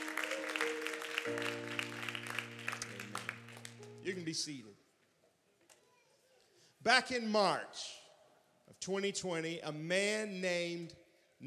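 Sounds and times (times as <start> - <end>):
audience clapping hands: 0.0 - 4.0
speech: 1.3 - 1.8, 4.1 - 4.8, 6.8 - 8.0, 8.8 - 11.4.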